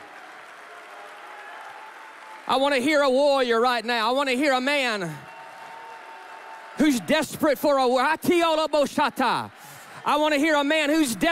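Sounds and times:
audience clapping hands: 0.0s - 11.3s
speech: 2.5s - 5.3s, 6.8s - 11.3s.

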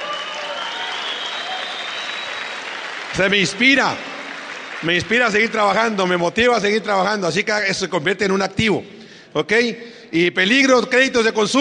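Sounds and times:
audience applause: 0.0s - 6.0s
speech: 3.1s - 4.1s, 4.8s - 11.5s.

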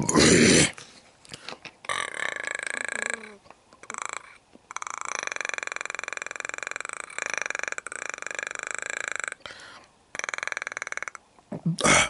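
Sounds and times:
voice imitating alien creature growl: 1.9s - 9.4s, 10.2s - 11.2s, 11.8s - 12.0s.

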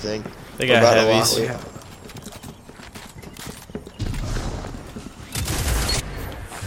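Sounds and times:
speech: 0.0s - 1.8s
fusion rifle firing in a shooter video game: 4.0s - 6.6s.

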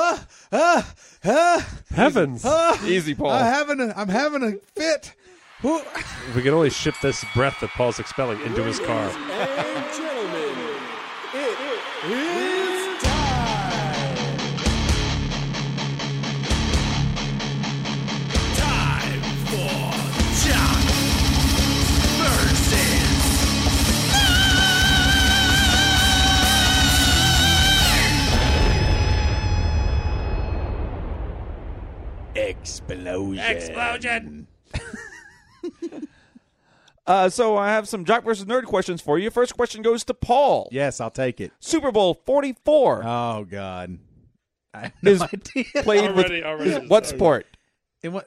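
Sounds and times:
laughter: 0.0s - 3.5s, 5.4s - 14.3s, 33.2s - 36.2s, 44.8s - 47.3s
speech: 0.5s - 10.7s, 12.0s - 12.4s, 32.6s - 35.0s, 35.6s - 36.1s, 37.1s - 44.1s, 44.7s - 48.2s
short burst of people's voices: 5.4s - 14.4s, 32.4s - 34.3s
podcast theme tune with pulsing bass beat and layered melody: 11.9s - 30.5s.

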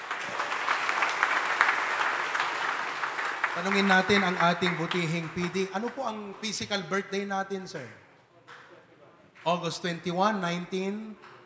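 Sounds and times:
audience applause: 0.0s - 6.1s
speech: 3.6s - 8.0s, 9.4s - 11.3s.

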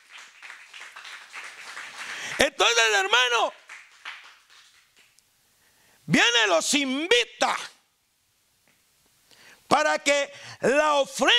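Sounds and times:
audience clapping hands: 0.0s - 5.2s
speech: 2.4s - 3.6s, 6.1s - 7.7s, 9.8s - 11.3s.

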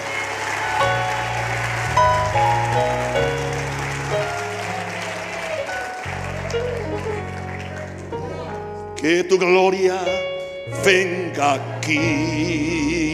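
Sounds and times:
loud audience applause: 0.0s - 8.5s
speech: 9.0s - 10.2s, 10.8s - 13.0s.

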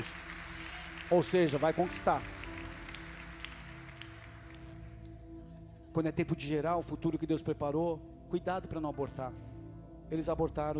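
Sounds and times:
speech: 0.0s - 0.2s, 1.1s - 2.4s, 6.0s - 9.5s, 10.1s - 10.7s
audience applauding: 0.0s - 5.1s
sustained droning keyboard chord: 0.0s - 10.7s.

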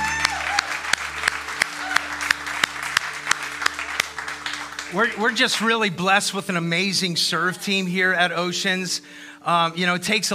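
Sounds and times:
audience applauding: 0.0s - 6.4s
speech: 4.9s - 10.3s.

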